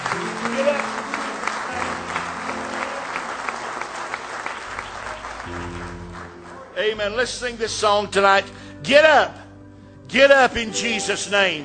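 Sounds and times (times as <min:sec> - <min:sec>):
audience hand clapping: 0:00.0 - 0:07.0
speech: 0:06.8 - 0:09.4, 0:10.1 - 0:11.6.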